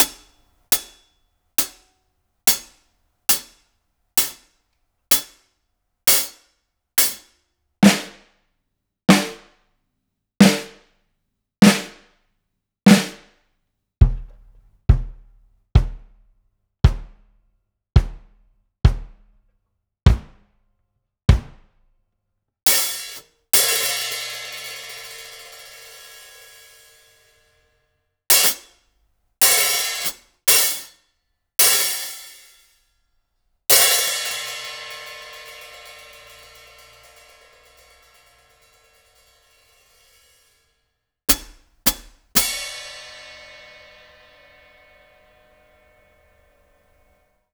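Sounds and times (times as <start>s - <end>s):
drum kit in an acoustic room: 0.0s - 1.0s, 1.6s - 1.8s, 2.5s - 3.6s, 4.2s - 4.4s, 5.1s - 5.4s, 6.1s - 6.4s, 7.0s - 8.3s, 9.1s - 9.6s, 10.4s - 10.8s, 11.6s - 12.1s, 12.9s - 13.3s, 14.0s - 16.2s, 16.8s - 17.4s, 18.0s - 19.4s, 20.1s - 20.5s, 21.3s - 21.8s, 22.7s - 27.1s, 28.3s - 28.7s, 29.4s - 30.9s, 31.6s - 32.7s, 33.7s - 40.6s, 41.3s - 45.4s.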